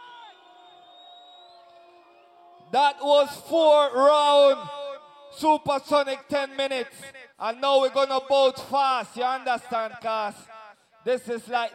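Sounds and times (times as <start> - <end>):
whoops and whistles: 0.0 - 2.7
crowd cheering and shouting: 0.0 - 3.5
speech: 2.7 - 11.7.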